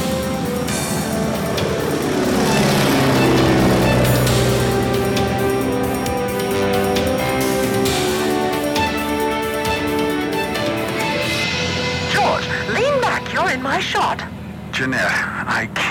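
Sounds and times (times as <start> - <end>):
small airplane engine droning in flight: 0.0 - 15.8.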